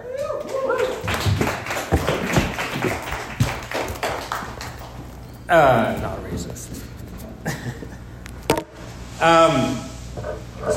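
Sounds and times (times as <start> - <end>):
audience clapping at a comedy show: 0.0 - 5.4
speech: 5.5 - 6.6, 9.2 - 9.8.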